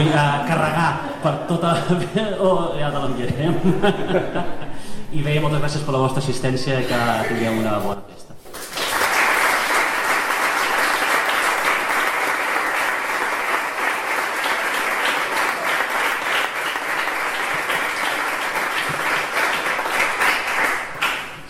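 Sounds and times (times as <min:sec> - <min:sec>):
laughter: 0:00.0 - 0:04.8
speech: 0:00.0 - 0:08.0
audience applause: 0:08.5 - 0:21.4.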